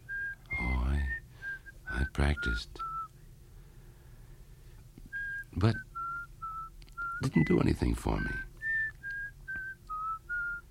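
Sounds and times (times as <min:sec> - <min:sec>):
person whistling a classical tune: 0:00.1 - 0:03.2, 0:05.1 - 0:07.6, 0:08.2 - 0:10.7
speech: 0:02.2 - 0:02.9, 0:05.6 - 0:05.9, 0:07.2 - 0:08.5.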